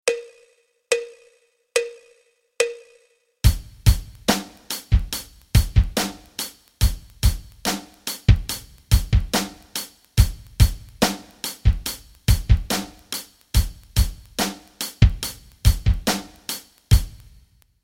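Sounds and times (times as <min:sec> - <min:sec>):
rock rhythms: 0:03.4 - 0:17.5.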